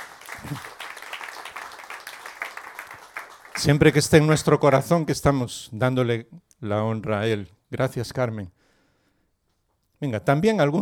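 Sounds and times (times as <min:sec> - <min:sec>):
audience applauding: 0:00.0 - 0:04.8
speech: 0:00.4 - 0:00.7, 0:03.6 - 0:08.6, 0:10.0 - 0:10.8.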